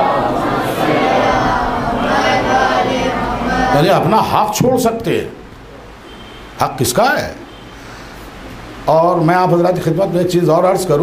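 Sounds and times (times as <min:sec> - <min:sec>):
crowd reciting salawat during a religious sermon: 0:00.0 - 0:04.6
speech: 0:03.8 - 0:05.4, 0:06.6 - 0:07.4, 0:08.8 - 0:11.0.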